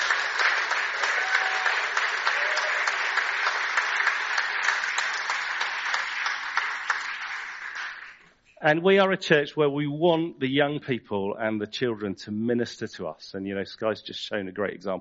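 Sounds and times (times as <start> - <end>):
audience applause: 0.0 - 8.2
speech: 8.6 - 15.0.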